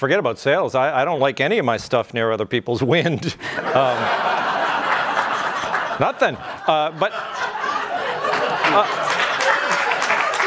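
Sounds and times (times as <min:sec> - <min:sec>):
speech: 0:00.0 - 0:04.4, 0:06.0 - 0:07.6, 0:08.7 - 0:09.1
audience laughter: 0:03.4 - 0:10.4
audience applause: 0:03.8 - 0:06.1, 0:07.6 - 0:10.4.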